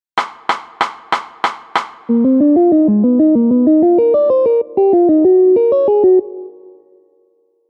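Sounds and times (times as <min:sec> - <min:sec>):
triad chord: 0:02.1 - 0:07.1.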